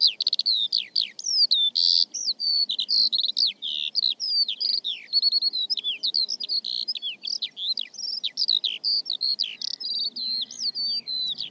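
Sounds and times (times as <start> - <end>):
bird song: 0.0 - 11.4.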